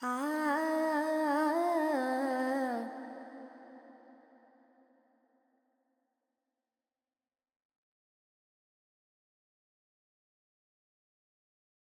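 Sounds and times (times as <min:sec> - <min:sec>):
Carnatic female vocal alaps in G pentatonic: 0:00.0 - 0:03.5.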